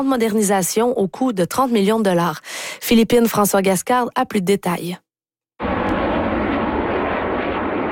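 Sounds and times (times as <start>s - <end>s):
speech: 0.0s - 5.0s
CT-114 Tutor jet trainer from the 1960s roaring overhead: 5.6s - 7.9s.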